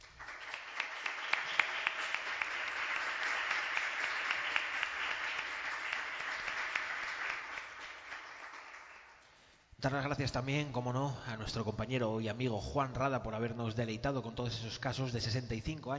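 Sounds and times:
applause: 0.0 - 9.6
speech: 9.8 - 15.9.

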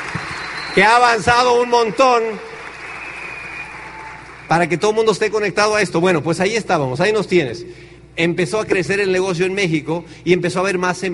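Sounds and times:
audience applause: 0.0 - 4.7
speech: 0.8 - 2.5, 4.5 - 11.1.

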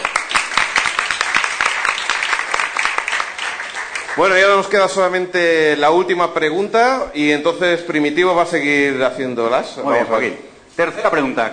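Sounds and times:
audience applause: 0.0 - 4.7
speech: 4.2 - 11.5.

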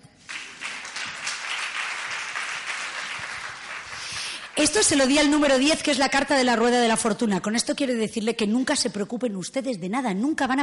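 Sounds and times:
audience applause: 0.2 - 5.2
speech: 4.6 - 10.6.

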